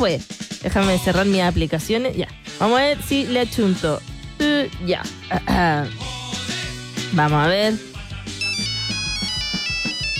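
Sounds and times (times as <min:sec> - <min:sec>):
speech: 0:00.0 - 0:06.0, 0:07.1 - 0:07.9
loud electronic phone ringtone as a call is placed: 0:08.3 - 0:10.1.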